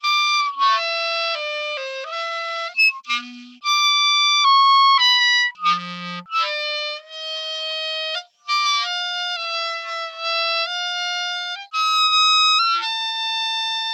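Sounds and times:
horrible clarinet solo: 0.0 - 13.9.

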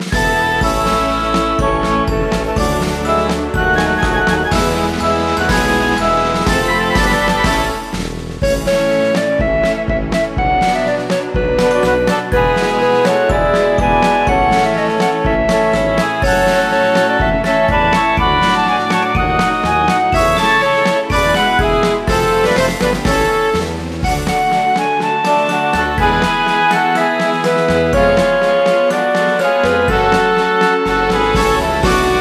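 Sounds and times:
menu event music: 0.0 - 32.1.

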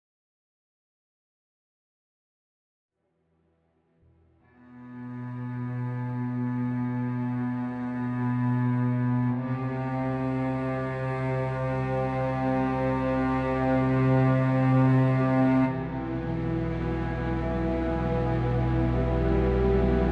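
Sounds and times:
strings: 4.5 - 20.1.

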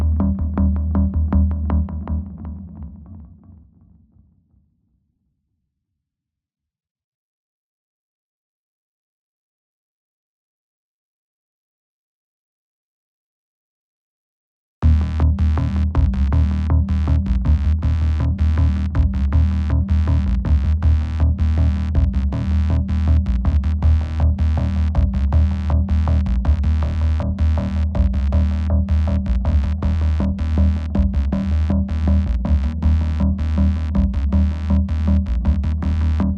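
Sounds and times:
tension bass music: 0.0 - 3.7, 14.8 - 36.3.

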